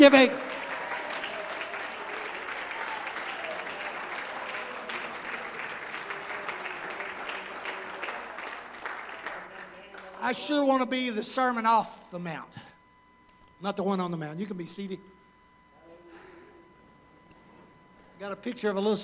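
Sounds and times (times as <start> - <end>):
speech: 0.0 - 0.4, 10.3 - 12.6, 13.6 - 15.1, 18.2 - 19.0
audience clapping hands: 0.0 - 10.8.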